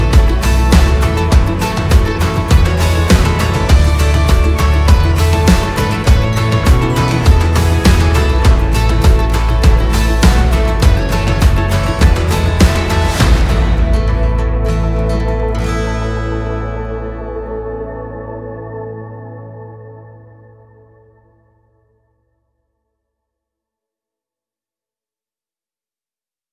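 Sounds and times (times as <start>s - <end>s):
summer countryside acoustic stomp music: 0.0s - 16.9s.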